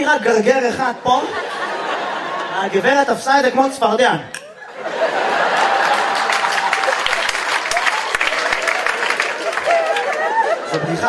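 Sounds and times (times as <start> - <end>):
speech: 0.1 - 1.6, 2.6 - 5.2, 10.8 - 11.0
laughter: 0.6 - 3.2, 4.2 - 11.0
audience applause: 4.9 - 11.0
people whooping: 5.4 - 11.0.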